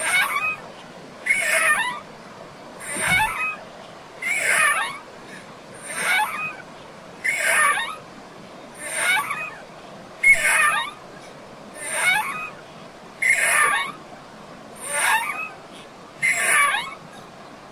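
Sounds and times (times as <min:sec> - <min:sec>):
swing at a river beach: 0:00.0 - 0:00.6, 0:01.2 - 0:02.1, 0:02.8 - 0:03.6, 0:04.2 - 0:05.0, 0:05.8 - 0:06.6, 0:07.2 - 0:08.0, 0:08.8 - 0:09.6, 0:10.2 - 0:11.0, 0:11.8 - 0:12.6, 0:13.2 - 0:14.0, 0:14.8 - 0:15.6, 0:16.2 - 0:17.1.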